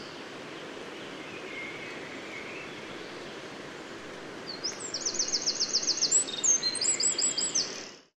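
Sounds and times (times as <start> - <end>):
background hiss: 0.0 - 8.0
Eurasian wren singing: 4.5 - 7.8.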